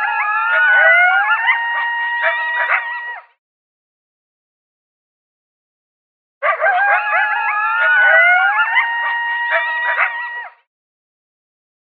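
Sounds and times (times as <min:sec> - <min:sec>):
coyotes howling and yipping: 0:00.0 - 0:03.4, 0:06.4 - 0:10.6.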